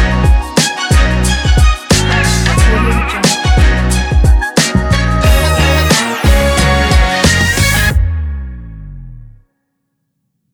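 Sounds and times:
hip hop music: 0:00.0 - 0:08.0.

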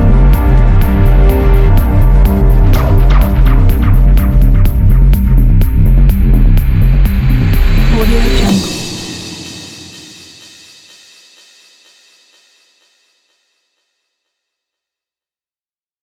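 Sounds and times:
tense ambient music: 0:00.0 - 0:10.4.

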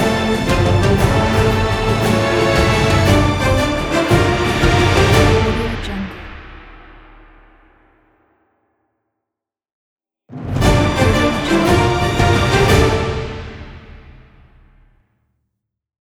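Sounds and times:
heroic adventure music: 0:00.0 - 0:06.8, 0:10.4 - 0:14.8.

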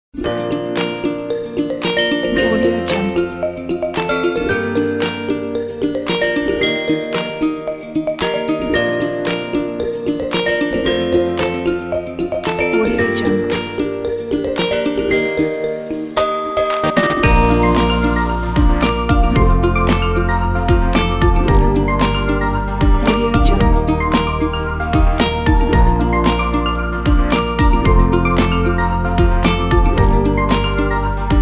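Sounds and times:
upbeat kids pop music: 0:00.2 - 0:15.5, 0:16.6 - 0:31.3.

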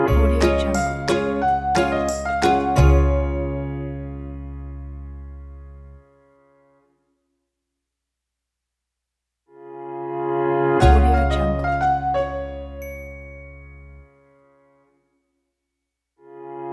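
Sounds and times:
happy logo jingle: 0:00.1 - 0:05.2, 0:10.8 - 0:14.0.

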